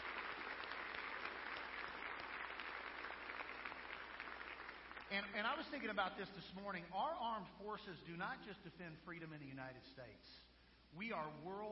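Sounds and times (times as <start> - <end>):
round of applause: 0.0 - 5.6
speech: 5.1 - 11.7.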